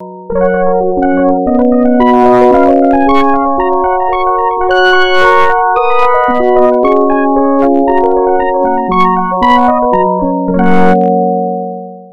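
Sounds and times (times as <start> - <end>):
resonant keyboard: 0.0 - 12.1.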